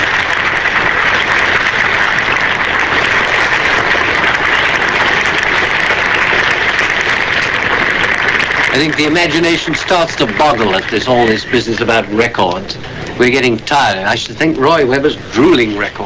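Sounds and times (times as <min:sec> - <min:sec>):
cricket crowd applause: 0:00.0 - 0:16.0
speech: 0:08.7 - 0:16.0.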